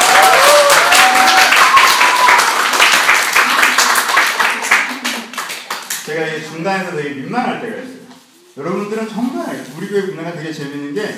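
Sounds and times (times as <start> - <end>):
audience applause: 0.0 - 6.0
speech: 6.6 - 8.0, 8.6 - 11.1.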